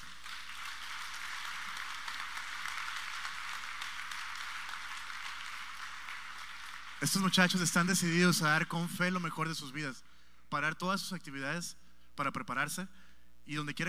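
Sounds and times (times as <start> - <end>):
crowd clapping: 0.0 - 9.5
speech: 7.0 - 13.8.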